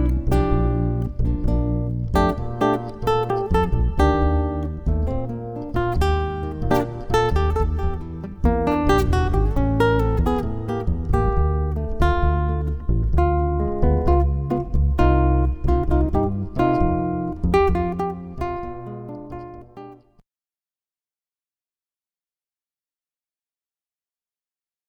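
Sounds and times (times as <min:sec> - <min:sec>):
jazz duo playing: 0:00.0 - 0:18.6.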